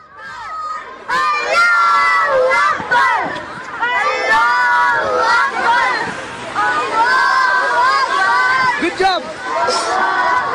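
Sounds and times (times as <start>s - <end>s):
group of children chanting in unison while marching through a street in England: 0.0s - 10.5s
murmur of crowd noise: 0.0s - 10.5s.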